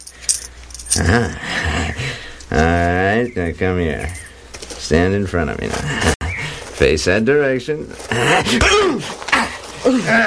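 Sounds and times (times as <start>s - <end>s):
coins clinking as they are handed over: 0.0s - 1.1s, 4.0s - 4.4s
speech: 1.0s - 4.2s, 4.9s - 6.2s, 6.8s - 9.2s, 9.8s - 10.2s.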